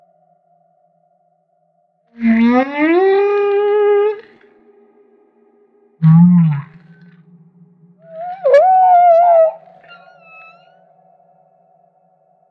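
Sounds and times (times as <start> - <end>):
speech: 2.2 - 3.0
humpback whale song: 2.2 - 4.3, 6.0 - 11.5.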